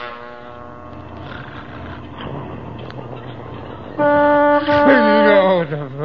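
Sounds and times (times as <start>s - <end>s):
truck passing by: 1.1s - 5.9s.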